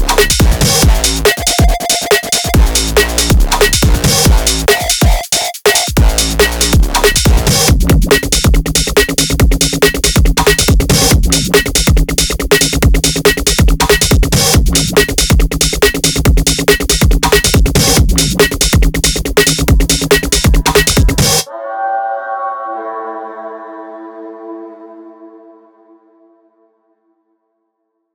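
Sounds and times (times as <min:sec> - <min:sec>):
breakbeat drums: 0:00.0 - 0:21.4.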